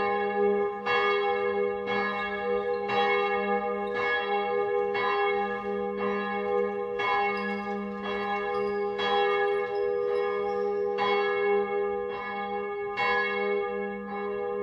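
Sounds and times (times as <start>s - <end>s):
cathedral bell tuned to G sharp: 0.0s - 14.6s.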